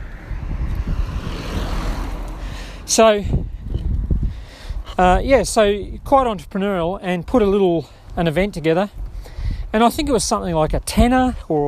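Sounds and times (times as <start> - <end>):
car speeding past: 0.0 - 2.9
speech: 2.9 - 3.4, 5.0 - 9.0, 9.7 - 11.6.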